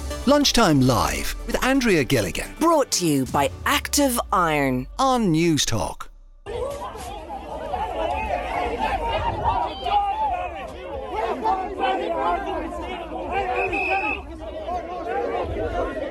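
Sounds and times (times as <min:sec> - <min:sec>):
speech: 0:00.2 - 0:06.1
crowd chatter at an Under-15 hurling championship match in Waterford: 0:06.5 - 0:16.1.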